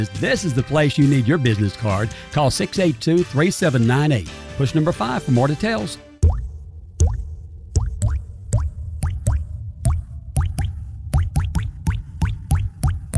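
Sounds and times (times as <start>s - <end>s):
speech: 0.0s - 6.0s
water dripping from a plumbing leak: 6.2s - 13.1s.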